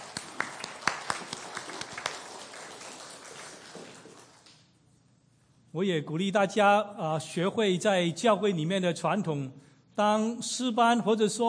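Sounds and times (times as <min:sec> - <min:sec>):
audience clapping: 0:00.0 - 0:04.7
speech: 0:05.8 - 0:11.4.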